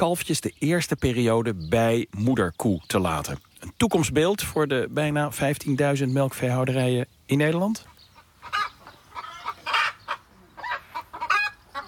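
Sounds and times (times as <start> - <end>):
speech: 0.0 - 7.9
chickens clucking in a farmyard: 0.0 - 11.8.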